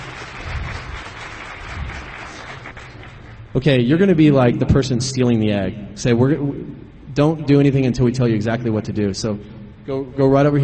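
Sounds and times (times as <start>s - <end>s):
audience applause: 0.0s - 3.5s
speech: 3.6s - 10.6s.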